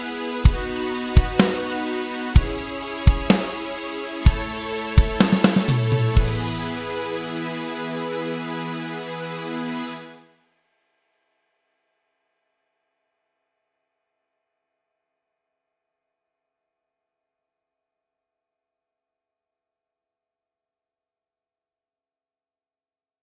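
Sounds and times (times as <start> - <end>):
I V VI- IV chord progression backing track: 0.0 - 10.2.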